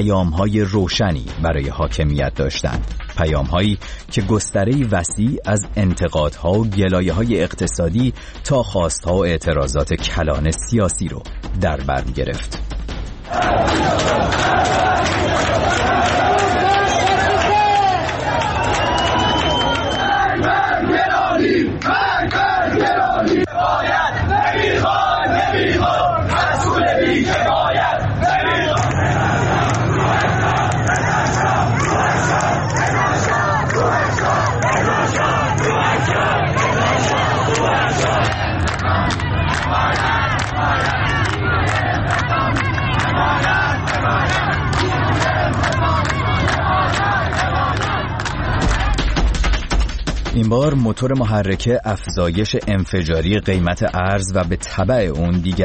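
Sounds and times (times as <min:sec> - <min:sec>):
speech: 0:00.0 - 0:15.7, 0:50.5 - 0:55.6
large protest crowd chanting a rhythmic slogan in unison: 0:13.3 - 0:49.4.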